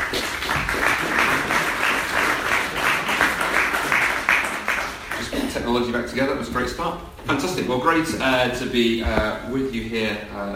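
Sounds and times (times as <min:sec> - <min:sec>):
audience applause: 0:00.0 - 0:05.4
speech: 0:05.7 - 0:10.5.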